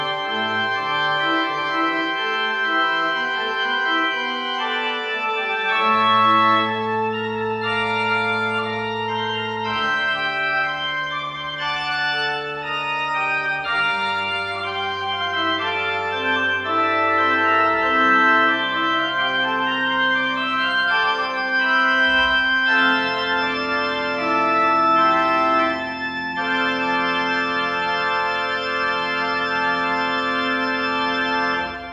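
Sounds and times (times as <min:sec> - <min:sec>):
organ prelude: 0:00.0 - 0:31.9.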